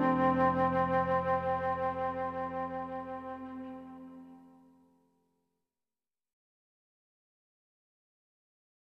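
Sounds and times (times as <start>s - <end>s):
acoustic instrumental praise music: 0.0s - 4.6s.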